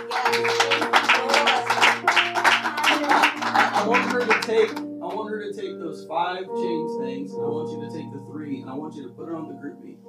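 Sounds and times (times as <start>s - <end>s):
crowd clapping: 0.0s - 5.2s
speech: 3.8s - 10.0s.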